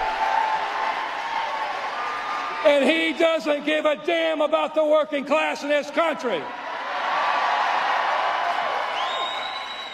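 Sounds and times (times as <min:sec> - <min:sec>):
large crowd cheering: 0:00.0 - 0:03.6, 0:06.6 - 0:09.9
speech: 0:02.6 - 0:06.6
single high whistle: 0:09.0 - 0:09.9.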